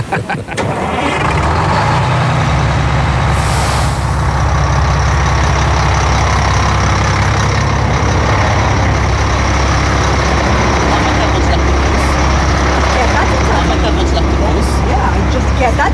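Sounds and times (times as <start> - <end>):
laughter: 0.0 - 1.2, 10.8 - 12.3
bus engine rumbling: 0.0 - 15.9
bus air-brake hiss: 3.3 - 4.4.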